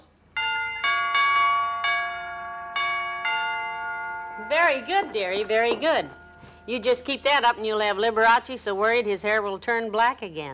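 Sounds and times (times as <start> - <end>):
door chimes ringing: 0.3 - 7.8
speech: 4.5 - 10.5.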